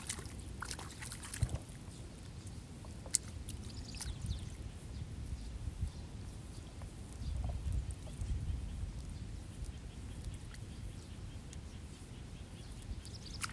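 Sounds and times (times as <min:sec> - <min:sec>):
sharp splashes or knocks: 0:00.0 - 0:01.8, 0:03.1 - 0:04.1, 0:13.3 - 0:13.5
low rumble of water and movement: 0:00.0 - 0:13.5
sparrows chirping over a rice paddy: 0:01.8 - 0:13.5.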